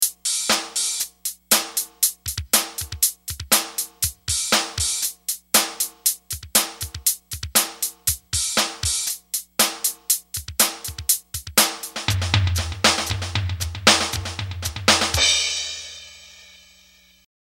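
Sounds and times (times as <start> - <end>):
indie rock music: 2.6 - 16.2.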